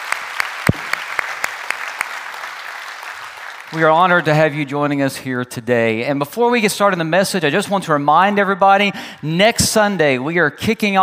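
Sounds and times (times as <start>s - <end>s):
audience clapping at a church worship service: 0.0s - 4.7s
speech: 3.7s - 11.0s.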